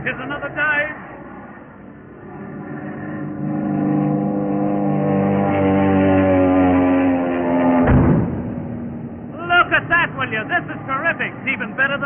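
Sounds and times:
speech: 0.0s - 1.1s
speeding car engine: 0.0s - 12.0s
sharp thud: 7.8s - 8.9s.

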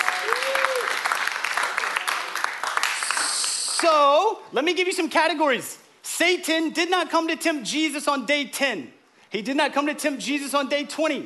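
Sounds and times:
audience clapping: 0.0s - 4.1s
speech: 3.8s - 11.2s.

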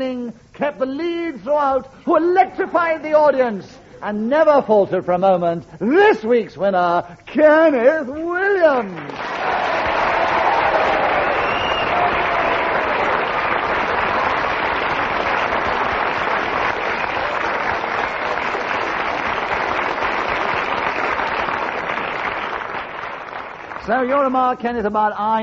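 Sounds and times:
speech: 0.0s - 9.6s, 23.9s - 25.4s
studio audience at a comedy panel game show applauding the winner: 8.7s - 24.6s.

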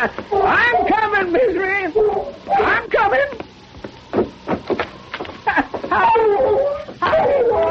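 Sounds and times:
speech: 0.0s - 2.6s
bloodhound whining and yelping: 1.9s - 2.7s, 5.6s - 7.6s.

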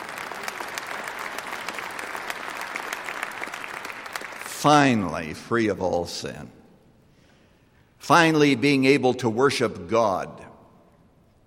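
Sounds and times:
audience clapping: 0.0s - 4.9s
speech: 4.6s - 6.6s, 8.0s - 10.5s.

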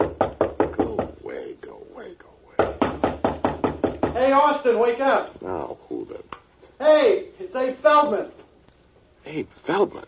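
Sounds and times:
knocking on a door: 0.0s - 1.3s, 2.6s - 4.4s
speech: 4.2s - 5.6s, 6.8s - 8.4s, 9.2s - 10.0s.

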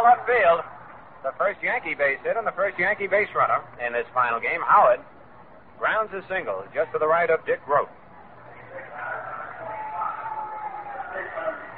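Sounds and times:
stadium crowd reaction: 0.0s - 3.4s, 7.0s - 11.7s
speech: 0.3s - 5.2s, 5.8s - 8.0s.

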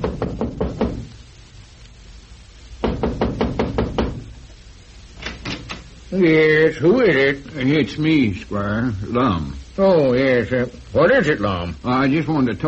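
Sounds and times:
knocking on the front door of a home: 0.0s - 1.1s, 2.8s - 4.3s
speech: 6.1s - 12.6s.

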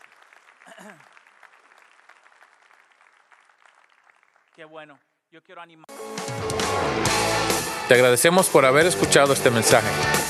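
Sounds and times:
audience applause: 0.0s - 4.7s
speech: 0.8s - 1.1s, 4.6s - 10.2s.

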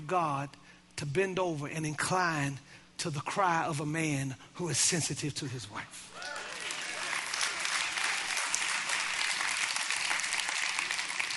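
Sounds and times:
speech: 0.1s - 6.1s
sizable crowd applauding: 6.2s - 11.3s.

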